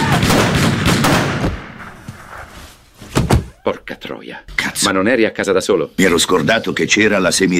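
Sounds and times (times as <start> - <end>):
rapid gunfire from weapons in a comedy sketch: 0.0 - 1.8
speech: 4.0 - 7.5.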